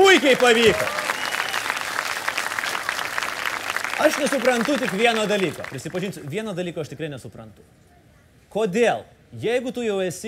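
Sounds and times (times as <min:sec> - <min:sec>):
crowd applause: 0:00.0 - 0:06.2
speech: 0:00.2 - 0:01.1, 0:04.0 - 0:10.2.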